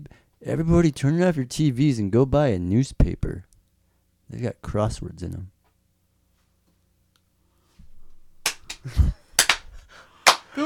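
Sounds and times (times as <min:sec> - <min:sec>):
speech: 0:00.4 - 0:03.5, 0:04.3 - 0:05.6, 0:08.8 - 0:09.2
audience clapping: 0:08.4 - 0:10.6.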